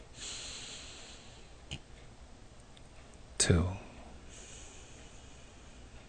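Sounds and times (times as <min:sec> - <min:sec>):
sniff: 0:00.2 - 0:01.4, 0:04.3 - 0:05.9
slow breath drawn in through the nose: 0:00.2 - 0:01.6, 0:04.3 - 0:05.9
speech: 0:03.4 - 0:03.8.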